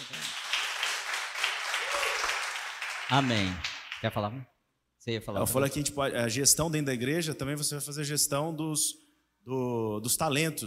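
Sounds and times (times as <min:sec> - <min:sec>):
round of applause: 0:00.0 - 0:04.3
speech: 0:03.1 - 0:10.6.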